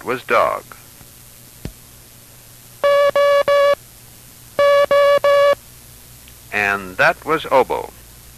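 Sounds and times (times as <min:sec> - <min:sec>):
speech: 0:00.0 - 0:00.8, 0:06.7 - 0:08.0
International Morse Code long dashes: 0:02.8 - 0:03.8, 0:04.6 - 0:05.6.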